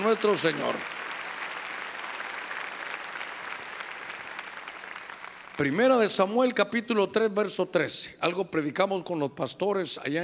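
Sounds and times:
speech: 0.0s - 1.0s, 5.6s - 10.2s
audience clapping loudly: 0.0s - 5.8s.

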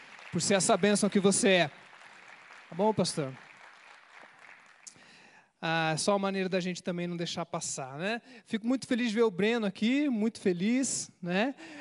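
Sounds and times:
crowd applause: 0.0s - 5.2s
speech: 0.4s - 1.9s, 2.7s - 3.5s, 5.6s - 11.7s.

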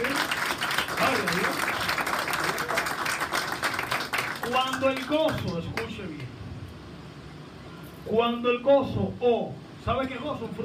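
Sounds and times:
audience applause: 0.0s - 5.5s
speech: 1.0s - 1.7s, 4.5s - 5.8s, 8.1s - 10.6s.

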